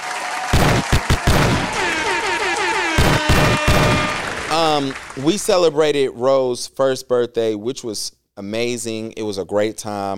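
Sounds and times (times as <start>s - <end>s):
hand claps sound effect: 0.0s - 5.6s
speech: 4.6s - 10.1s.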